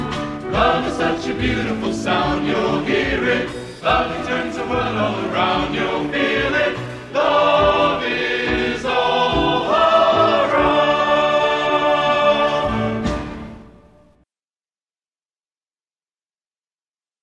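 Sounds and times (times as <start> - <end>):
chorale: 0.0 - 13.2.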